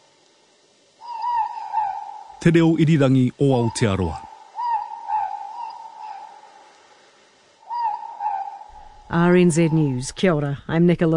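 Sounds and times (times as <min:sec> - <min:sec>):
ruru morepork owl call: 0:01.0 - 0:07.0, 0:07.6 - 0:10.2
speech: 0:02.4 - 0:04.2, 0:09.1 - 0:11.1.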